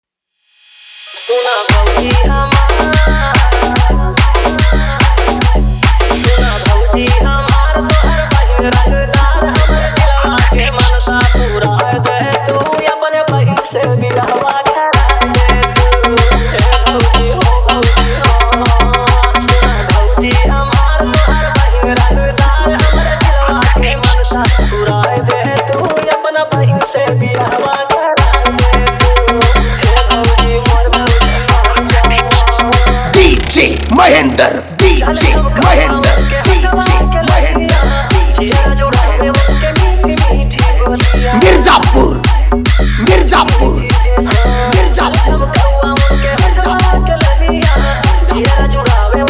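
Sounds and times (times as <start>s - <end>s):
Bhojpuri remix song: 1.2s - 49.2s.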